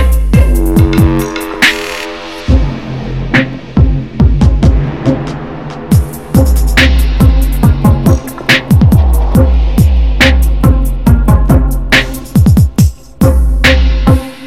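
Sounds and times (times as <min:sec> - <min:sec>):
taiko drums: 0:00.1 - 0:01.9, 0:02.5 - 0:14.2.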